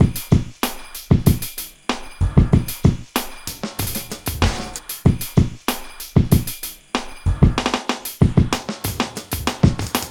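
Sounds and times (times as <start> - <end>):
hip hop drums: 0.0 - 10.0.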